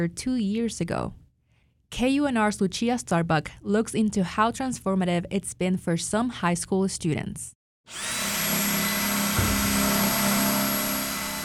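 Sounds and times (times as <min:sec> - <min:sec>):
speech: 0:00.0 - 0:01.2, 0:01.9 - 0:08.3
drilling between two greenhouses at Churchill County High School: 0:07.9 - 0:11.4.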